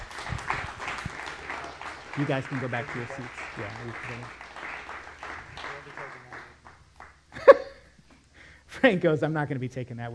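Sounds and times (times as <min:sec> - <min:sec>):
audience applause: 0:00.0 - 0:07.2
speech: 0:02.2 - 0:04.4, 0:08.8 - 0:10.1.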